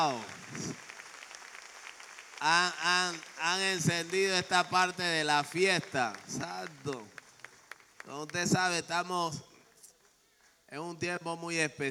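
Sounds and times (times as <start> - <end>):
speech: 0.0 - 0.9, 2.4 - 7.2, 8.1 - 9.5, 10.7 - 11.8
church congregation applauding a worship band: 0.0 - 8.9.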